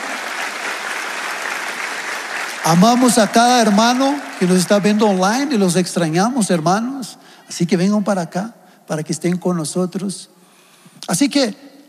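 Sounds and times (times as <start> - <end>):
audience applauding: 0.0 - 6.2
speech: 2.6 - 10.4, 11.1 - 11.6.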